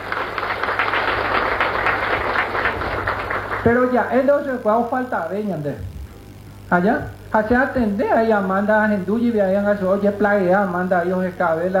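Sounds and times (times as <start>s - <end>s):
audience applause: 0.0s - 4.0s
speech: 3.6s - 5.9s, 6.7s - 11.7s.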